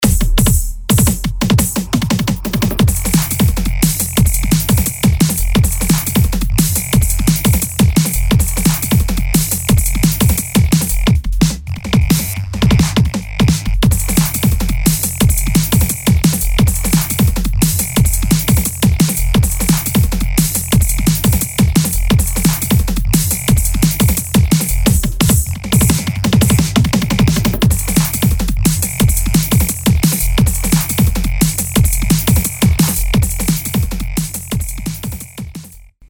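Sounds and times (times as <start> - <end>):
bass: 0.0 - 36.0.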